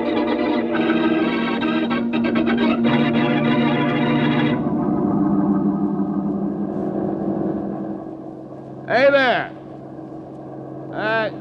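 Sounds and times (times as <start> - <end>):
loud strained tonal cry: 0.0 - 8.4
bus engine rumbling: 0.0 - 11.1.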